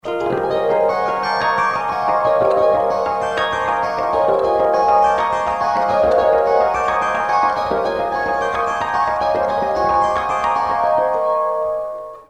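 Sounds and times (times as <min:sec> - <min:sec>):
guitar harmonics: 0:00.0 - 0:12.2.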